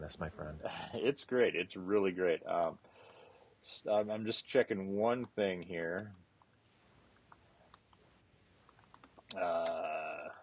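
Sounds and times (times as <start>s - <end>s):
speech: 0.0s - 2.9s, 3.6s - 6.2s, 9.3s - 10.0s
typing on a computer keyboard: 8.7s - 9.8s.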